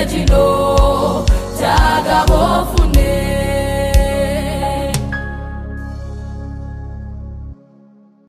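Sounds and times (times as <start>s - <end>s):
choir singing: 0.0s - 5.2s.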